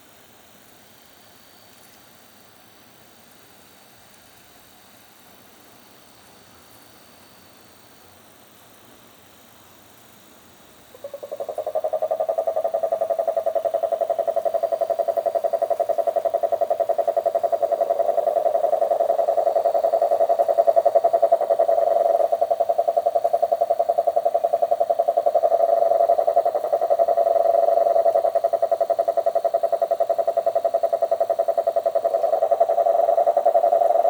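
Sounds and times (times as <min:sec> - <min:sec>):
marine toad Rhinella marina calling: 0:10.9 - 0:34.0.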